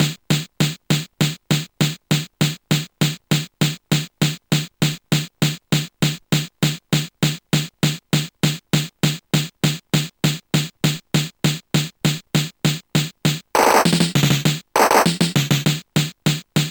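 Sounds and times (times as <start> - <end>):
drums: 0.0 - 16.6.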